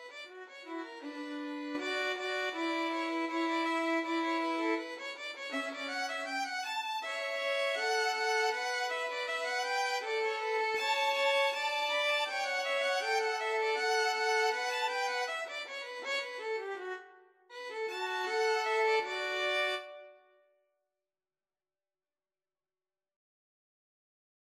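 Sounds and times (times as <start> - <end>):
violin trio playing: 0.5 - 17.0, 17.7 - 20.0.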